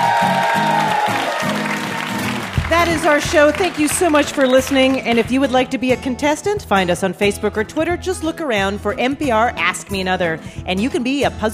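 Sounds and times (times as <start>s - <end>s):
audience applause: 0.0s - 5.2s
speech: 2.8s - 11.5s.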